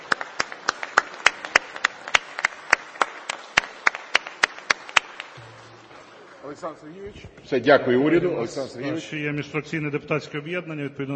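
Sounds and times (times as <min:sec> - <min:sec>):
parliament applause: 0:00.0 - 0:05.4
speech: 0:06.5 - 0:11.1.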